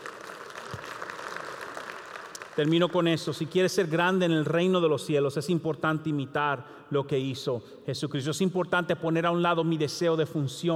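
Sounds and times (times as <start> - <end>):
audience applauding: 0.0 - 3.3
speech: 2.6 - 10.7.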